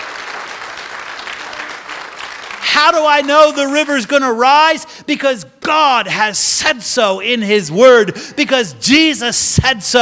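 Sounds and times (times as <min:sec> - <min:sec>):
church congregation clapping hands in joyful praise: 0:00.0 - 0:04.8
speech: 0:02.8 - 0:10.0.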